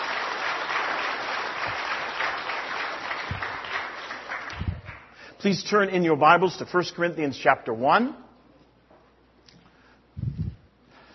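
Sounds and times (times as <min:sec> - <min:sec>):
audience applauding: 0:00.0 - 0:05.2
speech: 0:05.4 - 0:08.2.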